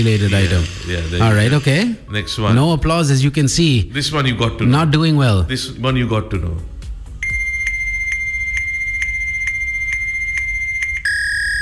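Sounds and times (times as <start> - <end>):
speech: 0.0 - 6.7
fax machine transmission tones: 7.2 - 11.6.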